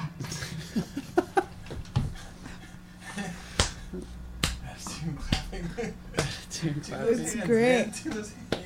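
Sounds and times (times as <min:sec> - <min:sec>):
laughter: 0:00.3 - 0:03.6, 0:04.9 - 0:06.8
speech: 0:00.8 - 0:01.2, 0:06.6 - 0:08.4
hand clapping out of rhythm: 0:04.4 - 0:04.7, 0:06.2 - 0:06.4, 0:08.1 - 0:08.6.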